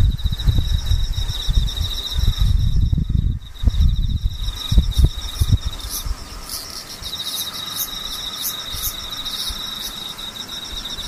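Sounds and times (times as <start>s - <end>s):
low rumbling thumps and bumps: 0.0s - 6.2s
insects chirring in a high trill: 0.0s - 11.0s.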